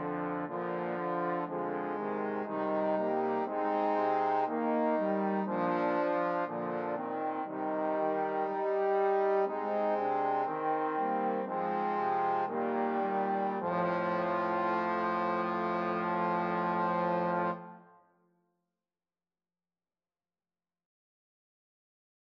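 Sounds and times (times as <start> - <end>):
trombone quartet: 0.0 - 17.8.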